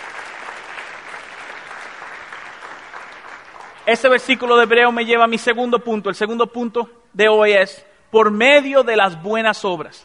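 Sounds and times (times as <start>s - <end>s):
crowd applause: 0.0s - 4.8s
speech: 3.9s - 10.0s.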